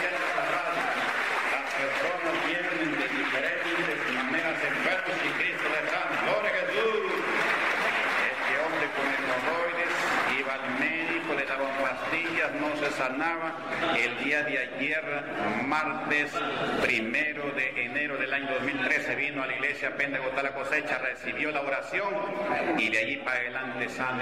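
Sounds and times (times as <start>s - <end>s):
audience applause: 0.0s - 14.2s
speech: 13.0s - 24.2s.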